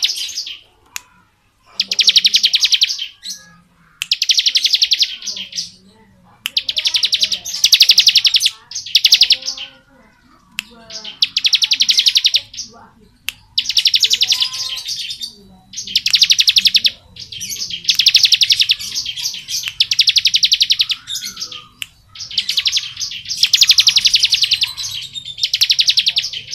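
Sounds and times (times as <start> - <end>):
bar-winged prinia buzzy trills: 0.0 - 26.5.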